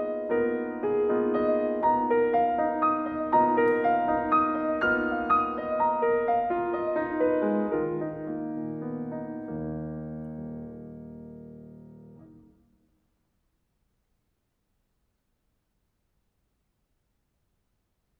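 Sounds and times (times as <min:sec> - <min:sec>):
andante con moto piano piece: 0:00.0 - 0:12.9.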